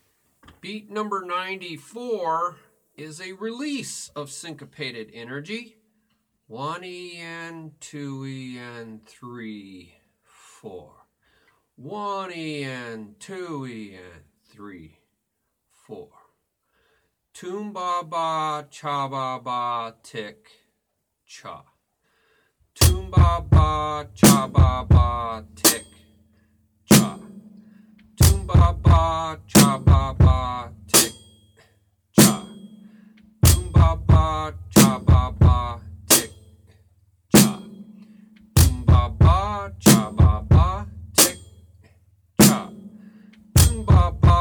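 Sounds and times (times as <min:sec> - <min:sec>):
drum beat: 0:22.8 - 0:26.0, 0:26.9 - 0:31.4, 0:32.2 - 0:36.6, 0:37.4 - 0:41.7, 0:42.4 - 0:44.3.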